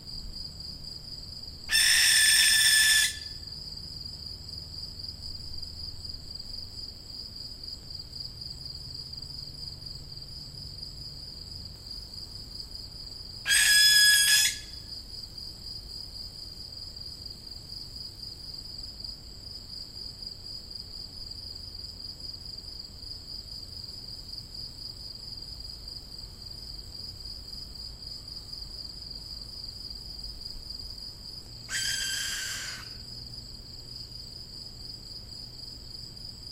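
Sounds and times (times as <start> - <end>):
young barn owl hissing screech: 1.7 - 3.3, 13.5 - 14.8, 31.7 - 33.0.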